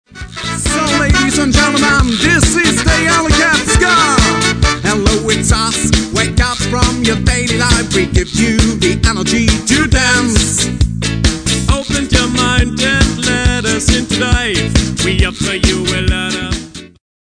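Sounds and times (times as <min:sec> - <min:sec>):
ska music: 0:00.0 - 0:17.0.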